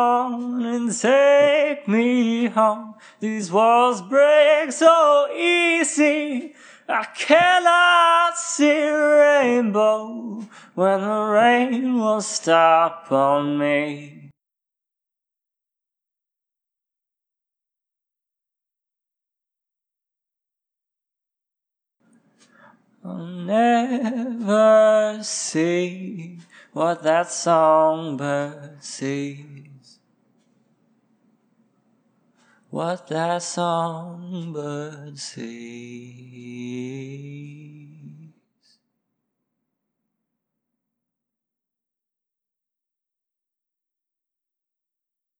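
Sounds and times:
a cappella singing at 90 BPM: 0.0 - 14.4, 23.0 - 30.0, 32.7 - 38.8.

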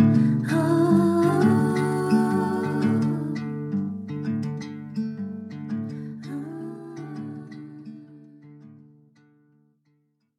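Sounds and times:
person singing: 0.2 - 3.7, 6.1 - 8.5.

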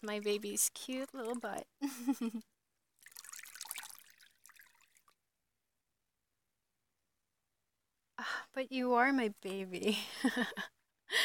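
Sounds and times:
speech: 0.0 - 2.5, 8.5 - 11.2
water trickling while washing a baby: 0.0 - 5.2.

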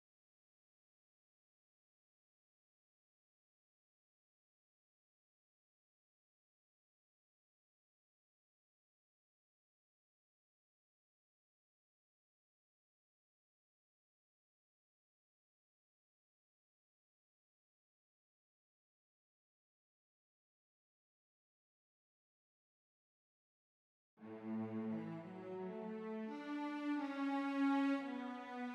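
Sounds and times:
string cellos playing: 24.2 - 28.7.

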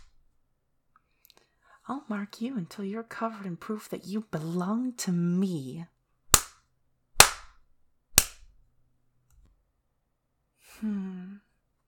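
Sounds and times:
speech: 1.9 - 5.9, 10.8 - 11.1
whip cracking on skin: 7.2 - 7.6
low voiced sigh or moan: 10.6 - 11.5.

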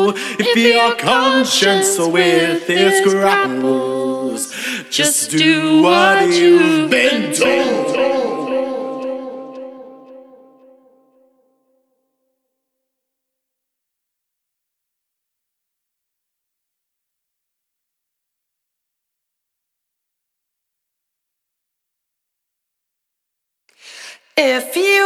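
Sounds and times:
vocals: 0.0 - 11.3, 23.7 - 25.0.

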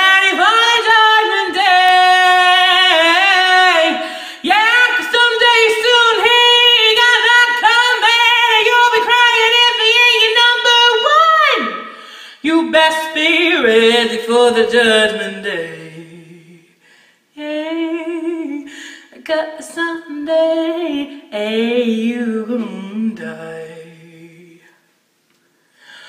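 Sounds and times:
soulful jazzy a cappella original song: 0.0 - 24.8.

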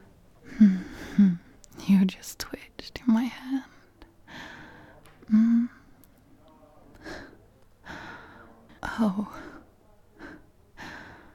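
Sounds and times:
heavy breathing: 0.4 - 1.6, 4.2 - 6.0, 6.9 - 11.3
speech: 0.6 - 1.3, 2.0 - 2.6.

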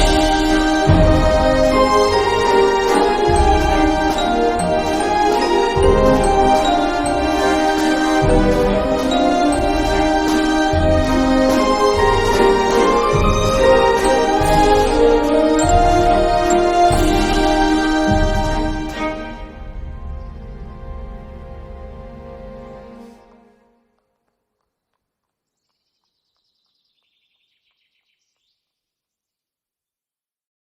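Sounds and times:
waltz music: 0.0 - 23.9.

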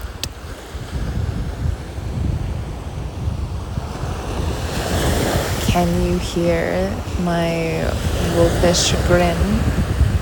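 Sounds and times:
waves washing onto a beach: 0.0 - 10.2
wind buffeting the microphone: 0.0 - 10.2
speech: 5.8 - 9.8.

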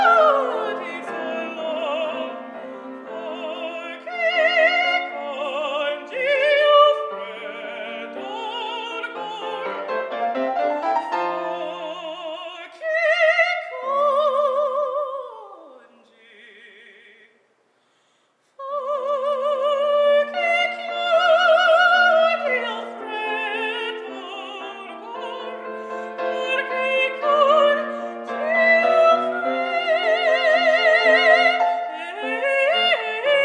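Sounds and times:
woman singing Italian opera: 0.0 - 10.1, 11.0 - 17.3, 18.6 - 33.4.

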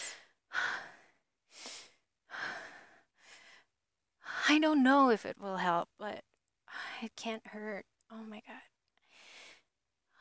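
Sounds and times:
deep breaths: 0.0 - 4.4, 9.0 - 10.1
speech: 4.5 - 6.3, 7.0 - 8.7.

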